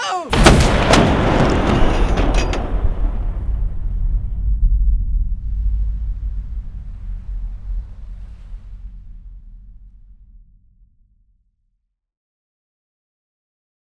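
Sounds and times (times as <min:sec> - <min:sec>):
game weapon firing sharp cracking blasts: 0:00.3 - 0:03.9
heavy booming rumble settling into a low decaying roar: 0:00.3 - 0:11.6.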